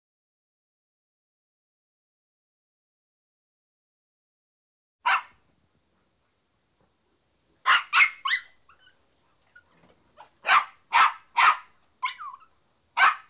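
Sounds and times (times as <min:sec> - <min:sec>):
dog barking: 0:05.0 - 0:05.4, 0:07.6 - 0:08.9, 0:10.2 - 0:12.4, 0:13.0 - 0:13.2.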